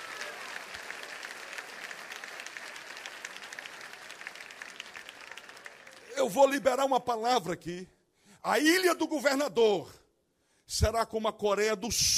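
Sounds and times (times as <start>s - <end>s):
audience applause: 0.0s - 6.6s
speech: 6.2s - 10.0s, 10.7s - 12.1s.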